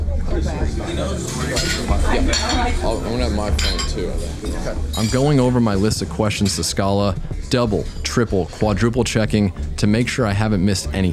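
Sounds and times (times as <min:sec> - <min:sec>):
constant murmur of indistinct voices in a diner: 0:00.0 - 0:11.1
speech: 0:00.4 - 0:11.1
cutlery and dishes clinking in a busy diner: 0:01.3 - 0:05.5.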